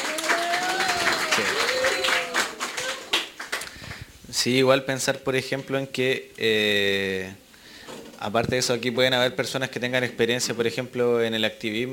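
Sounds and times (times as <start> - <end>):
voices cheering: 0.0 - 3.3
audience applause: 0.0 - 4.0
speech: 4.4 - 7.4, 8.2 - 11.9.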